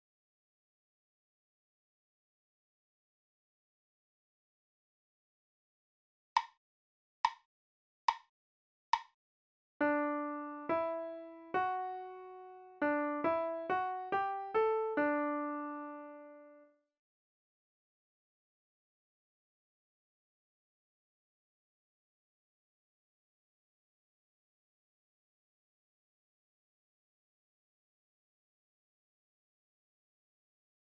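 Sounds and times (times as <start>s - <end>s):
melodic music: 9.8s - 16.6s.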